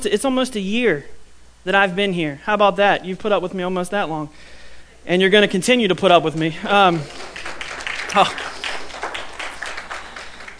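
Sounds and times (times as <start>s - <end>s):
speech: 0.0s - 7.5s, 8.1s - 8.5s
audience clapping: 5.9s - 10.5s.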